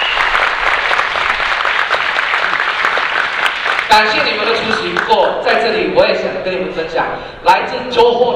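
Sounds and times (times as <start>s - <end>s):
warm audience applause: 0.0s - 5.1s
speech: 3.9s - 8.3s.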